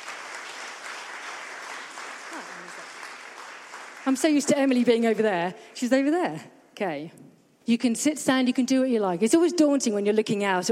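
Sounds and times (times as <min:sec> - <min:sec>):
crowd clapping: 0:00.0 - 0:04.9
speech: 0:04.1 - 0:10.7.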